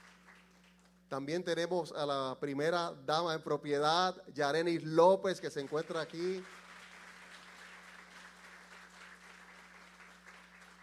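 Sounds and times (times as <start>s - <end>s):
audience applause: 0.0s - 0.9s, 5.6s - 10.8s
speech: 1.1s - 6.6s.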